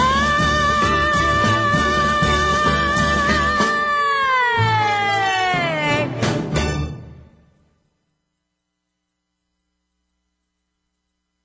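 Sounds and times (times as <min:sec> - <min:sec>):
Christmas song: 0:00.0 - 0:07.6.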